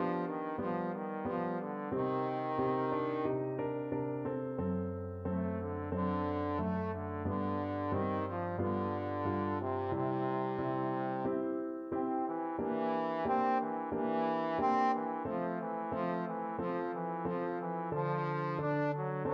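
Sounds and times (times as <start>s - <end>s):
trombone playing a baroque cantata movement: 0.0s - 4.0s, 5.2s - 19.3s.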